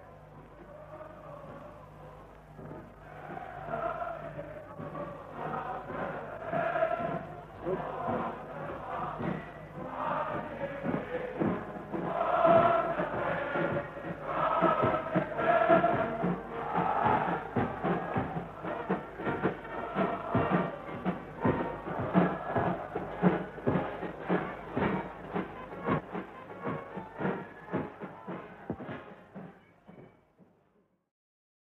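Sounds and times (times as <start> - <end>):
crowd cheering outside an open window: 0.0 - 30.0.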